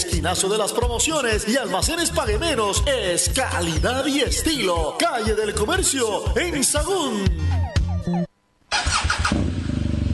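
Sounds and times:
speech: 0.2s - 8.3s
motorcycle engine starting and revving: 8.7s - 10.1s.

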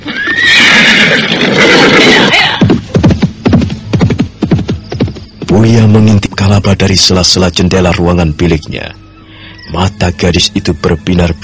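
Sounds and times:
jet-black horse whinnying: 0.0s - 2.6s
hooves clopping on a hard surface: 1.2s - 6.2s
speech: 6.0s - 9.0s, 9.7s - 11.4s.

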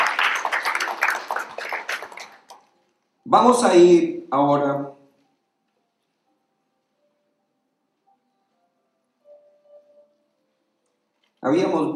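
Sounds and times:
audience applause: 0.0s - 2.6s
speech: 3.3s - 5.0s, 11.4s - 11.9s.

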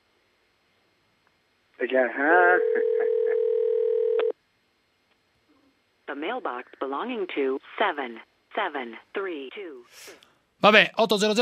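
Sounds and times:
speech: 1.8s - 3.4s, 6.1s - 11.3s
international phone line ringing tone: 2.4s - 4.3s.

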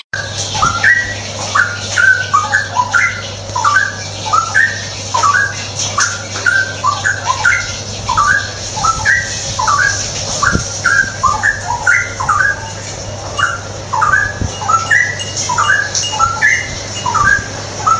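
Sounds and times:
low background hum: 0.2s - 17.9s
straw-headed bulbul gurgling whistles: 0.2s - 17.9s.

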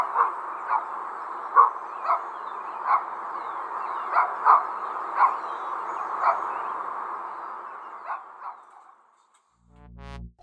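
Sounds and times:
dogs barking outdoors at a home: 0.0s - 3.2s, 4.0s - 6.6s, 7.8s - 8.9s
birds: 0.0s - 9.3s.

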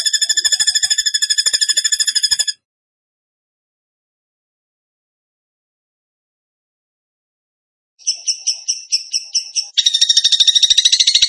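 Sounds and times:
bird trilling: 0.0s - 2.6s, 8.0s - 11.2s.

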